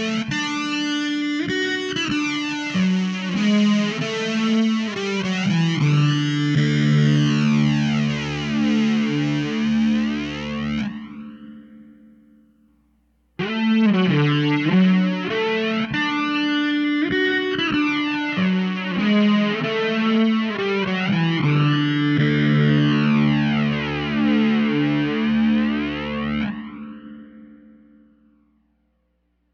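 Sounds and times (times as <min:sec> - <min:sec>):
fuzzy distortion noise with EQ: 0:00.0 - 0:27.3.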